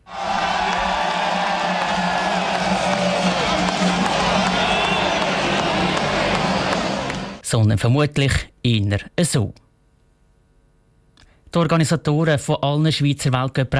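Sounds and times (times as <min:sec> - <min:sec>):
ski race spectators cheering: 0:00.0 - 0:07.4
clapping: 0:00.1 - 0:07.4
speech: 0:07.5 - 0:09.6, 0:11.6 - 0:13.7.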